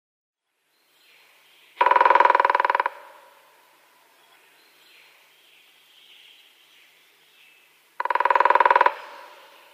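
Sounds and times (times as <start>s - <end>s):
grey-headed woodpecker drumming: 1.8s - 3.3s, 8.0s - 9.7s.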